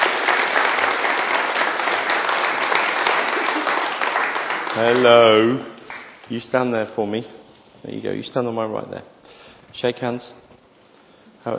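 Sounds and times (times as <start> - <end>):
audience clapping: 0.0 - 6.7
speech: 4.8 - 5.7, 6.3 - 10.4.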